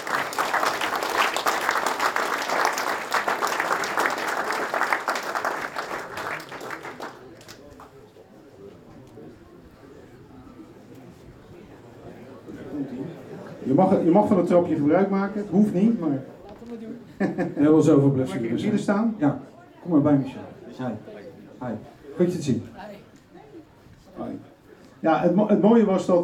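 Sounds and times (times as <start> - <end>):
loud applause from the audience: 0.0 - 8.0
speech: 13.8 - 22.8, 25.0 - 26.2
laughter: 17.0 - 17.8.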